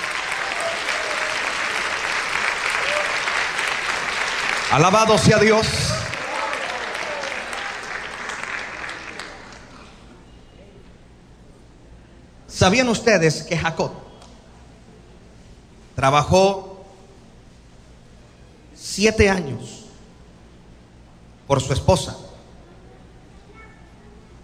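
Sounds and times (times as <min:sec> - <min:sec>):
audience applauding loudly: 0:00.0 - 0:10.1
speech: 0:04.7 - 0:05.8, 0:12.6 - 0:14.1, 0:16.0 - 0:16.7, 0:19.0 - 0:19.8, 0:21.5 - 0:22.2.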